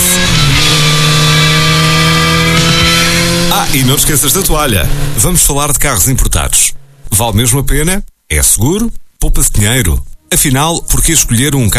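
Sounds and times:
motorcycle engine revving: 0.0 - 5.7
speech: 3.7 - 11.7.

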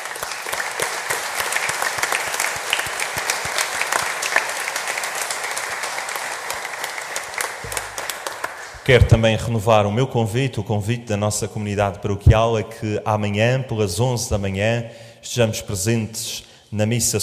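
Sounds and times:
round of applause: 0.0 - 8.9
speech: 8.9 - 17.2.

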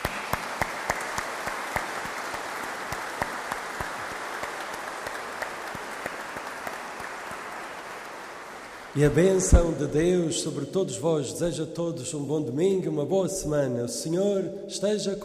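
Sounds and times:
big round of applause: 0.0 - 10.0
speech: 9.0 - 15.2.

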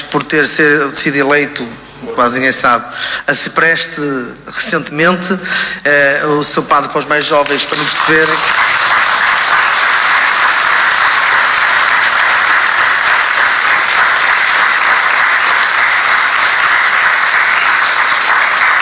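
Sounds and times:
speech: 0.3 - 9.0
audience applause: 7.2 - 18.8.

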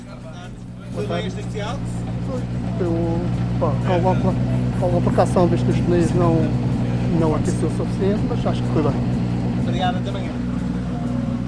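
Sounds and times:
Skoda Fabia R5 rally car engine idling at the Rally da Calheta: 0.0 - 11.4
speech: 1.0 - 10.4.

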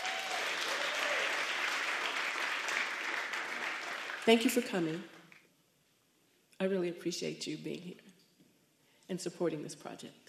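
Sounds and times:
faint whoop: 0.0 - 1.4
crowd clapping to welcome a performer: 0.0 - 5.4
speech: 4.2 - 5.2, 6.6 - 8.1, 9.1 - 10.2.

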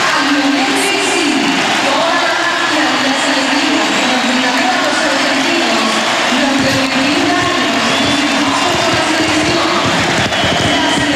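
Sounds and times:
Estádio Monumental crowd applauding: 0.0 - 11.1.

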